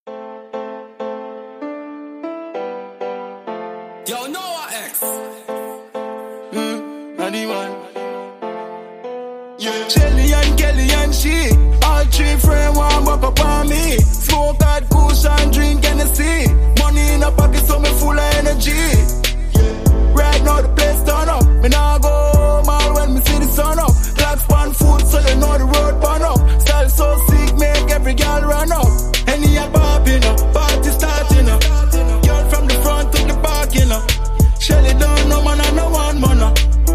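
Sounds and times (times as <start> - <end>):
trap house riddim: 10.0 - 36.9.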